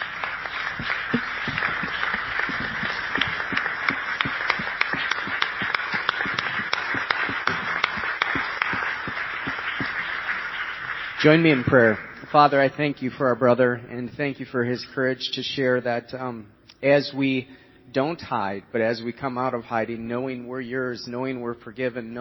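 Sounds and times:
audience applause: 0.0 - 12.4
speech: 11.2 - 22.1.

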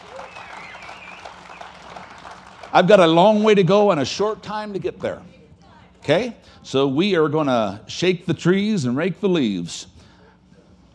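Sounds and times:
audience clapping hands in praise: 0.0 - 3.5
speech: 2.7 - 5.4, 6.1 - 9.9.

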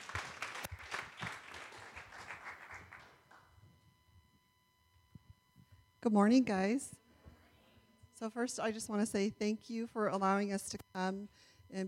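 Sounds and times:
audience applause: 0.0 - 3.4
speech: 6.0 - 7.0, 8.2 - 11.8.

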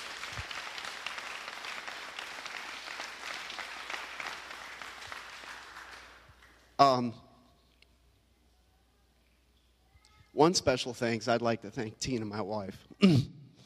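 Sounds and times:
audience applause: 0.0 - 6.6
speech: 6.8 - 7.2, 10.4 - 13.4.

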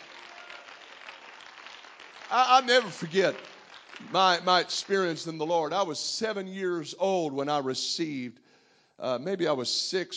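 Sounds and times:
people clapping: 0.0 - 5.3
speech: 2.3 - 8.4, 9.0 - 10.1.

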